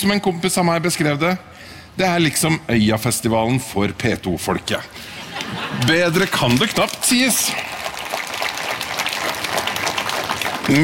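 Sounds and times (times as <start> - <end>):
speech: 0.0 - 7.7
laughter: 4.9 - 7.7
audience applause: 5.8 - 10.8.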